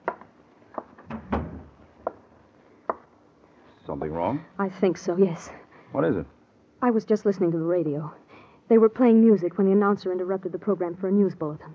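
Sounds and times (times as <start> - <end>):
door closing: 1.0 - 1.9
speech: 3.9 - 11.7.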